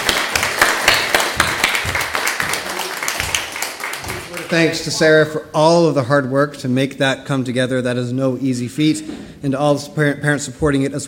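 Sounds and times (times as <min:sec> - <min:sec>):
audience applause: 0:00.0 - 0:05.0
speech: 0:04.5 - 0:11.0.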